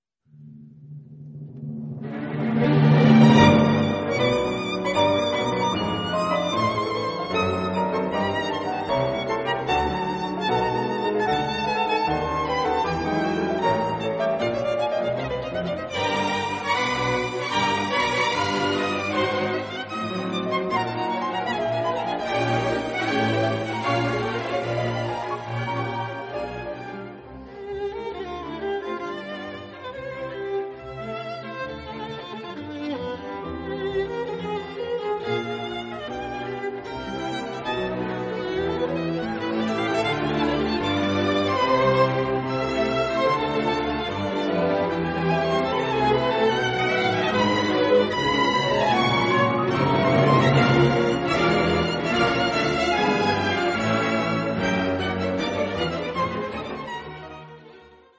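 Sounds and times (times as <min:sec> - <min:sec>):
orchestra playing songs and dances: 0:00.3 - 0:58.1.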